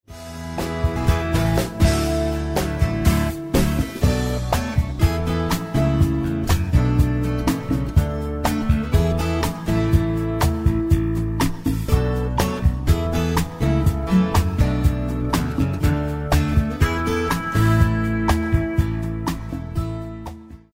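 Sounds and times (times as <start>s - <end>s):
light contemporary music: 0.1s - 20.7s.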